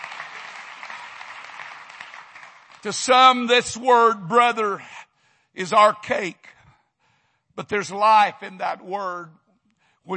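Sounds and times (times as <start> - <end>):
audience clapping: 0.0 - 3.6
speech: 2.8 - 4.9, 5.6 - 6.6, 7.6 - 9.4.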